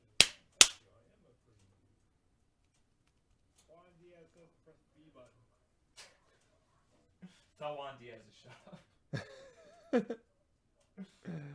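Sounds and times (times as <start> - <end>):
hand clap: 0.0 - 0.8
speech: 7.2 - 10.3
laughter: 8.4 - 10.3.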